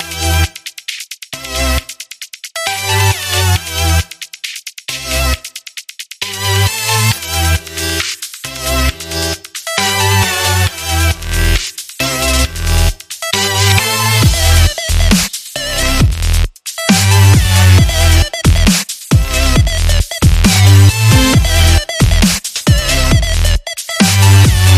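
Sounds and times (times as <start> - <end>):
dubstep music: 0.0 - 24.7.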